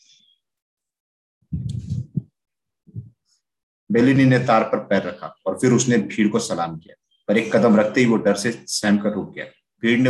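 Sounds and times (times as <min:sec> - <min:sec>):
pounding heartbeat: 0:01.5 - 0:03.2
speech: 0:03.9 - 0:10.0.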